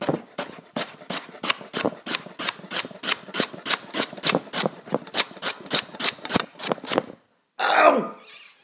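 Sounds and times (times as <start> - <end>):
chopping carrots: 0.0 - 7.1.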